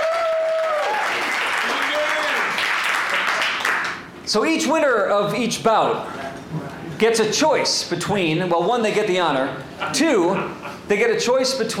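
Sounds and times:
whoops and cheering voices: 0:00.0 - 0:02.6
audience applause: 0:00.0 - 0:04.0
speech: 0:04.3 - 0:06.2, 0:07.0 - 0:11.7.

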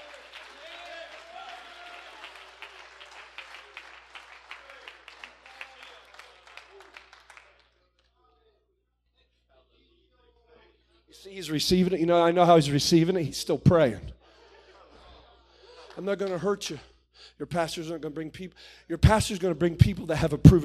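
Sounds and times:
audience clapping: 0:00.0 - 0:08.2, 0:15.7 - 0:16.7
speech: 0:11.2 - 0:14.2, 0:16.0 - 0:20.6
laughter: 0:14.2 - 0:16.6.

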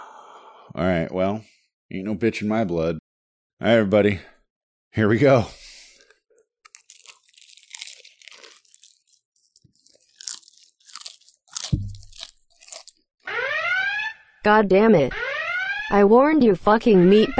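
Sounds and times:
speech: 0:00.8 - 0:03.0, 0:03.6 - 0:04.3, 0:04.9 - 0:05.6, 0:14.5 - 0:15.2, 0:15.9 - 0:17.3
crunchy chicken skin being chewed: 0:05.8 - 0:13.1.

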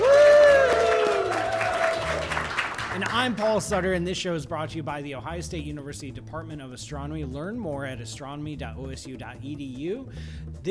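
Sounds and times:
live audience of friends and family cheering woo: 0:00.0 - 0:03.1
live audience clapping: 0:00.0 - 0:03.8
speech: 0:03.2 - 0:10.6.

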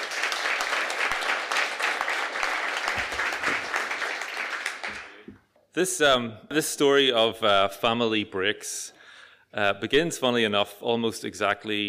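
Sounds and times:
audience applause welcoming a storyteller at a storytelling night: 0:00.0 - 0:05.3
speech: 0:05.8 - 0:11.8.

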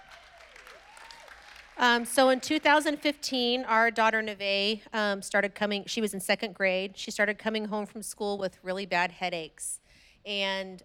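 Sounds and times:
audience applause: 0:00.0 - 0:02.0
speech: 0:01.8 - 0:10.8.

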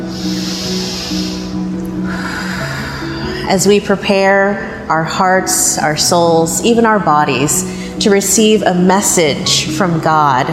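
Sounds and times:
worshippers at an Easter Sunday church service taking a deep breath together: 0:00.0 - 0:03.6
speech: 0:03.5 - 0:10.5.

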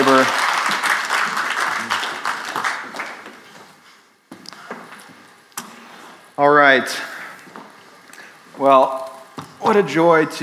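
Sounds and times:
audience applause: 0:00.0 - 0:03.4
speech: 0:06.4 - 0:07.1, 0:08.6 - 0:09.0, 0:09.7 - 0:10.4.

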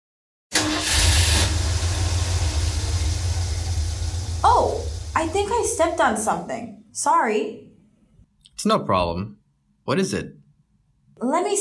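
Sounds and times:
car engine on a late-night drive into town: 0:00.6 - 0:06.2
speech: 0:05.2 - 0:07.7, 0:08.6 - 0:10.4, 0:11.2 - 0:11.5.

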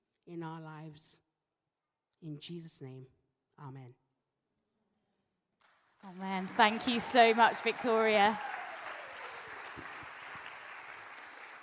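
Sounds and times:
speech: 0:00.3 - 0:01.3, 0:02.2 - 0:04.0, 0:06.0 - 0:08.6
audience applause: 0:06.1 - 0:11.6.

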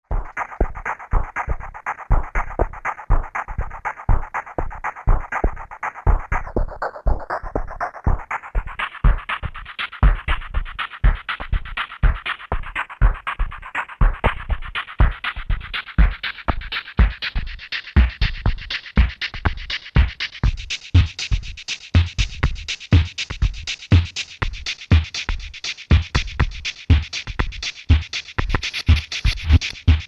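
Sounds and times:
beat: 0:00.1 - 0:30.0.

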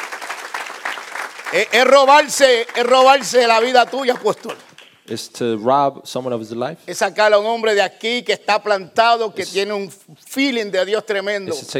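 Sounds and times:
audience applauding: 0:00.0 - 0:05.0
speech: 0:01.5 - 0:11.7.

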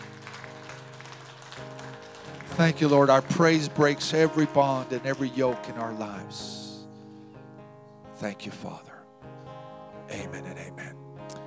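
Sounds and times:
audience clapping in praise: 0:00.0 - 0:06.6
speech: 0:02.6 - 0:06.6, 0:08.2 - 0:08.9.

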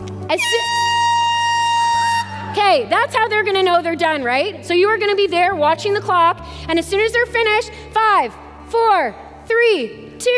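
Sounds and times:
speech: 0:00.3 - 0:01.0, 0:02.6 - 0:10.3
horn marking end of timer: 0:00.3 - 0:02.8.

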